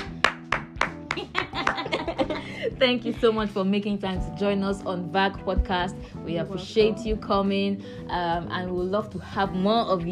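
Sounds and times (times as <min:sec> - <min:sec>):
round of applause: 0:00.0 - 0:02.2
laughter: 0:01.1 - 0:03.1
speech: 0:01.2 - 0:10.1.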